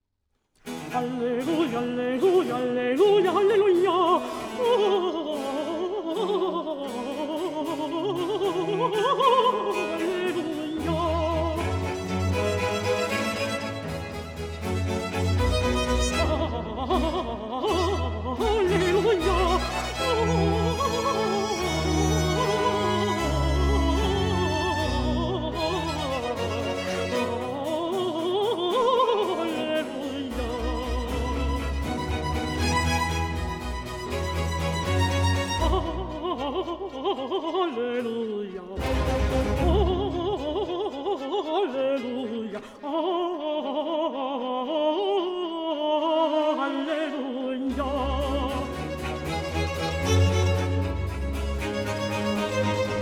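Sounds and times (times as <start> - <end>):
string ensemble playing presto: 0.6 - 52.9
contralto singing a motet: 0.7 - 52.9.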